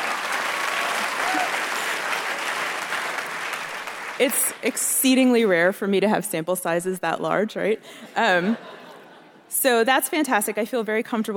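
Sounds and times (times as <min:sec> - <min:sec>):
audience applause: 0:00.0 - 0:04.8
speech: 0:04.2 - 0:08.8, 0:09.5 - 0:11.3.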